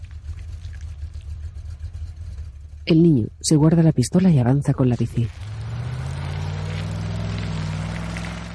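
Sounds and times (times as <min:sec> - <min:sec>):
car engine as a car drives off down a street: 0:00.0 - 0:02.9, 0:04.9 - 0:08.5
speech: 0:02.9 - 0:05.5.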